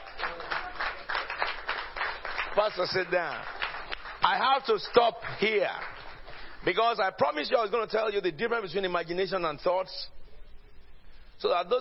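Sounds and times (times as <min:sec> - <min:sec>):
audience clapping: 0:00.0 - 0:07.0
speech: 0:02.6 - 0:03.6, 0:04.2 - 0:05.9, 0:06.6 - 0:10.2, 0:11.4 - 0:11.7.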